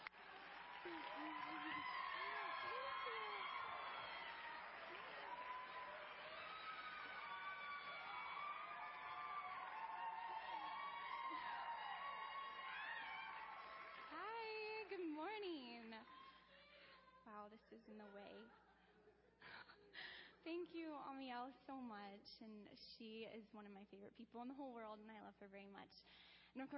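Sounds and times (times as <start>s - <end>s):
large audience applauding and cheering: 0.0s - 15.4s
speech: 0.8s - 4.2s, 17.4s - 18.7s, 20.4s - 26.7s.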